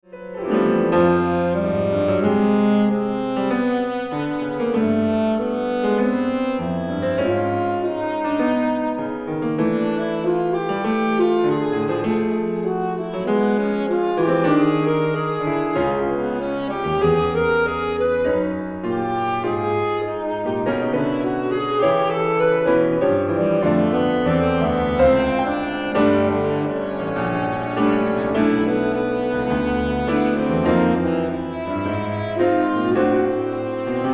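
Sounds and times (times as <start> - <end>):
saxophone: 0.1 - 34.1.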